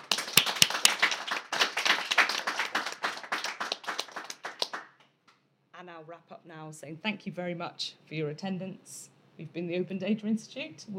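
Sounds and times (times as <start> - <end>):
audience round of applause: 0.0 - 5.0
speech: 6.2 - 10.9.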